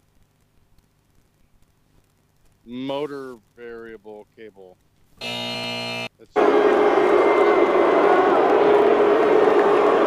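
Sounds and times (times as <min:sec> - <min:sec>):
speech: 0:02.6 - 0:07.5
crowd cheering: 0:05.6 - 0:10.0.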